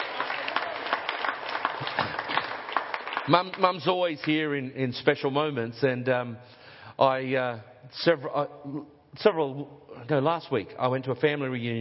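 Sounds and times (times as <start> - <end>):
audience applause for the speaker's mother: 0.0 - 3.9
speech: 3.2 - 11.8.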